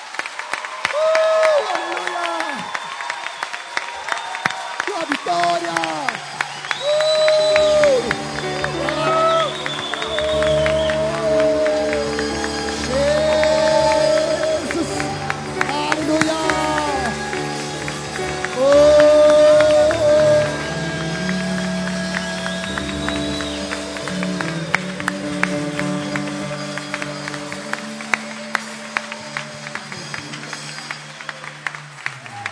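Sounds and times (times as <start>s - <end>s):
audience clapping and cheering: 0.0s - 32.5s
sustained organ-like music with deep bass chords: 6.2s - 32.3s.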